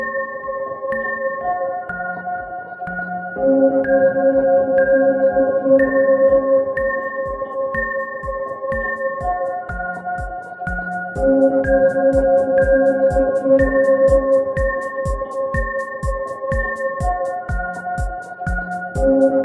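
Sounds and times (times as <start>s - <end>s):
music track at 134 BPM: 0.1s - 19.4s.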